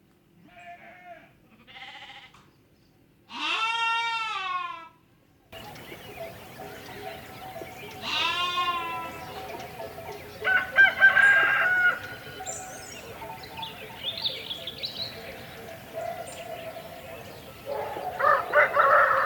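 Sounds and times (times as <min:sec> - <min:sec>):
farmyard background noise: 0:00.0 - 0:19.2
lamb bleating: 0:00.5 - 0:02.4, 0:03.3 - 0:04.9, 0:08.0 - 0:09.2.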